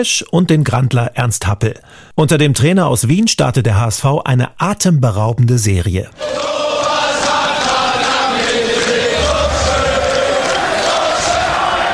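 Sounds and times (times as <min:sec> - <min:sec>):
speech: 0:00.0 - 0:07.0
football fans cheering and chanting: 0:06.1 - 0:11.9.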